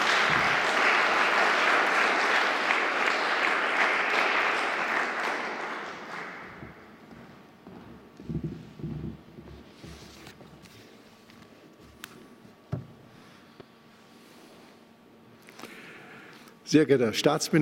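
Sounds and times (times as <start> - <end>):
audience applause: 0.0 - 7.1
speech: 16.7 - 17.6.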